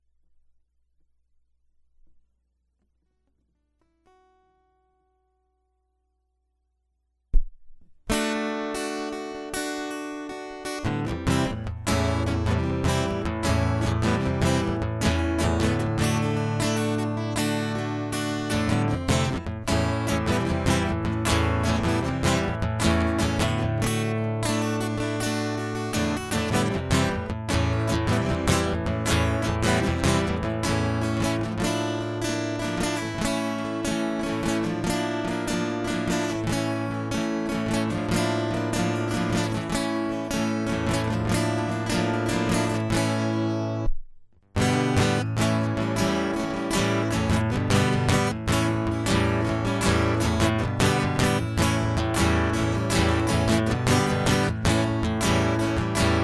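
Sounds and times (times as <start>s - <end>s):
guitar loop: 8.1s - 43.9s, 44.6s - 56.2s.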